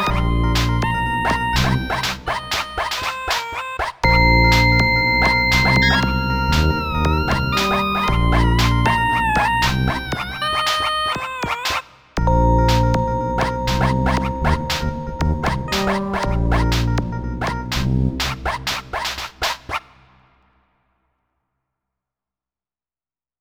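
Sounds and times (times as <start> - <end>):
MIDI ditty: 0.0 - 3.4, 4.0 - 11.4, 12.2 - 19.6.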